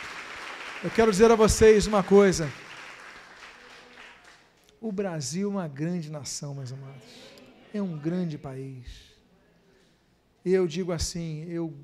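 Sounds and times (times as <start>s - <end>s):
audience applauding: 0.0s - 4.6s
speech: 0.8s - 2.6s, 4.8s - 9.1s, 10.4s - 11.8s.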